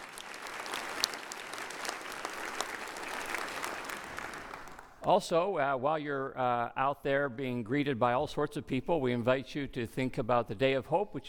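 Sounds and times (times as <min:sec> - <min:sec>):
audience applause: 0:00.0 - 0:05.0
speech: 0:05.0 - 0:11.2.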